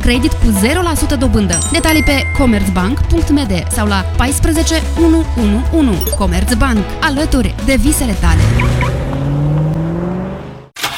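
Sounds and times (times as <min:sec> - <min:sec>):
speech: 0:00.0 - 0:09.0
car engine turning over: 0:08.3 - 0:10.9.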